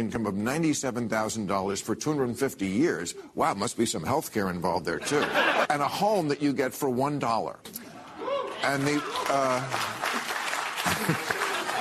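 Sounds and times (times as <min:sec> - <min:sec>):
speech: 0:00.0 - 0:07.8, 0:08.6 - 0:10.0
laughter: 0:05.0 - 0:05.7, 0:07.9 - 0:11.7
audience clapping: 0:08.4 - 0:11.7.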